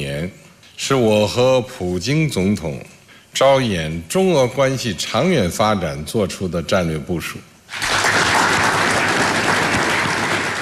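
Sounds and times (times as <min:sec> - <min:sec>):
speech: 0:00.0 - 0:07.9
warm audience applause: 0:07.7 - 0:10.6.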